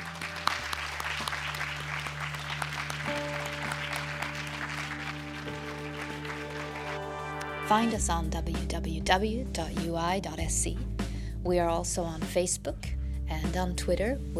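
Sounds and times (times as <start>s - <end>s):
seminar audience applause: 0.0s - 7.7s
speech: 7.7s - 14.3s.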